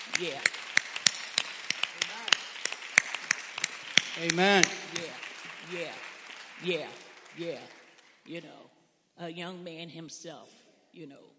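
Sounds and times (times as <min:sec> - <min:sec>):
scattered audience applause: 0:00.0 - 0:08.3
speech: 0:00.2 - 0:00.6, 0:04.2 - 0:06.0, 0:06.6 - 0:11.3.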